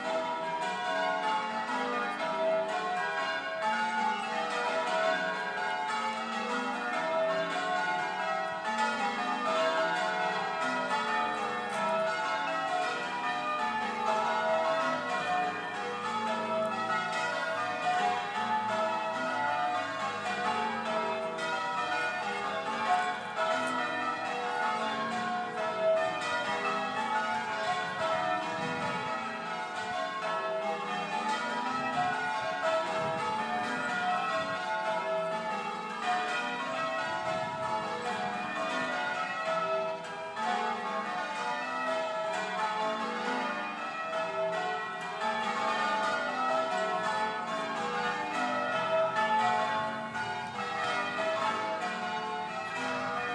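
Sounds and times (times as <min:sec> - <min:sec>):
Ludlow bells ringing: 0:00.0 - 0:53.3.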